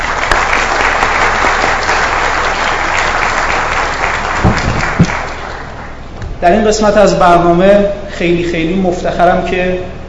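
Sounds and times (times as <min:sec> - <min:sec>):
audience applause: 0:00.0 - 0:06.0
speech: 0:06.4 - 0:10.0.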